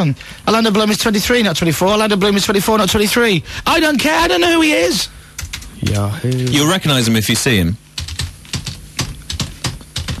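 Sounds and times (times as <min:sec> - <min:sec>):
speech: 0:00.0 - 0:05.2, 0:05.8 - 0:07.8
typing on a computer keyboard: 0:05.4 - 0:05.7, 0:08.0 - 0:10.1.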